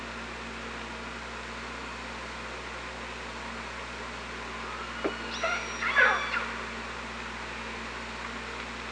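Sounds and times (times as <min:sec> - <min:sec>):
low hum: 0:00.2 - 0:08.9
orca calls: 0:05.1 - 0:06.7.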